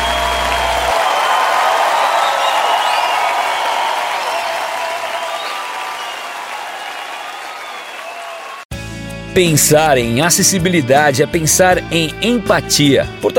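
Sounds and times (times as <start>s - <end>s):
high whoops: 0.0s - 8.6s
church congregation clapping and cheering: 0.0s - 8.7s
speech: 9.4s - 13.3s.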